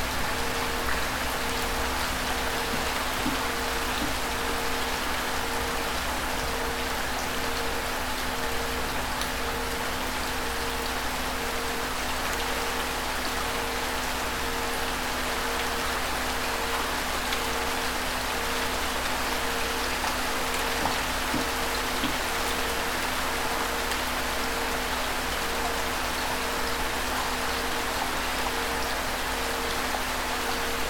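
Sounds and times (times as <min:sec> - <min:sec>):
gentle rain: 0:00.0 - 0:30.8.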